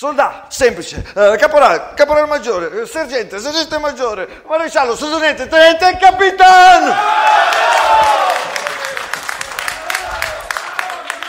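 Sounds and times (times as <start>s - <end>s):
speech: 0.0s - 8.4s
crowd applause: 7.1s - 11.2s.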